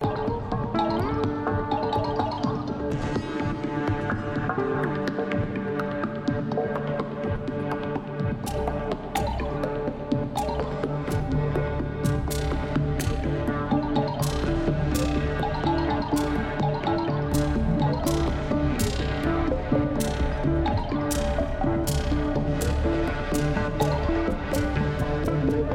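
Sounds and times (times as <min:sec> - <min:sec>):
drums: 0:00.0 - 0:25.7.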